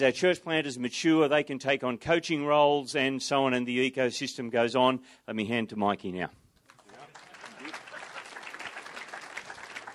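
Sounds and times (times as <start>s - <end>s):
speech: 0.0s - 6.4s
audience clapping: 6.6s - 9.9s.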